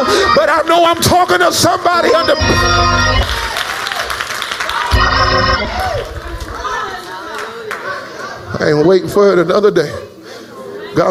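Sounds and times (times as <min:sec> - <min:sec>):
audience clapping: 0:00.4 - 0:08.4
speech: 0:00.5 - 0:03.5, 0:08.6 - 0:10.2.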